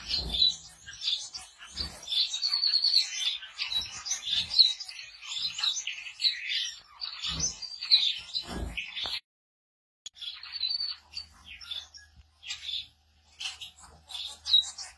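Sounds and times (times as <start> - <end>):
society finch chattering: 0.0 - 9.2, 10.1 - 14.9.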